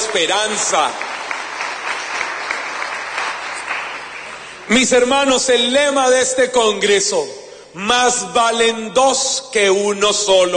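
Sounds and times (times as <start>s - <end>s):
audience applause: 0.0s - 4.7s
speech: 0.1s - 1.2s, 4.7s - 10.5s.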